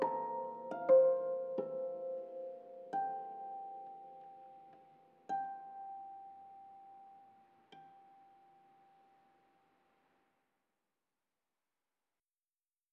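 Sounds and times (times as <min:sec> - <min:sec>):
harp: 0:00.0 - 0:09.4.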